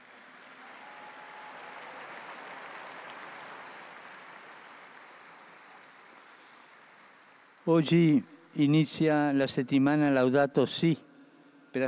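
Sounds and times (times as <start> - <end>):
crowd applause: 0.0 - 8.1
speech: 7.6 - 11.1.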